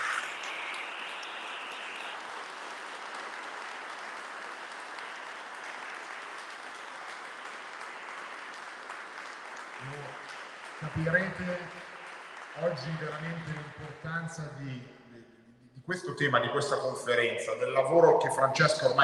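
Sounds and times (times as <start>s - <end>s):
audience applause at a conference: 0.0s - 14.8s
speech: 10.9s - 11.9s, 12.6s - 15.0s, 15.9s - 19.0s.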